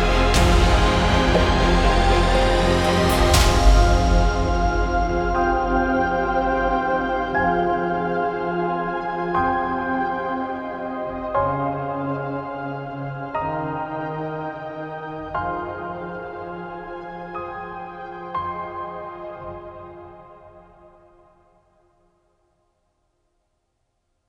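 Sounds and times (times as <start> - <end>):
orchestral sci-fi cinematic music: 0.0 - 18.3.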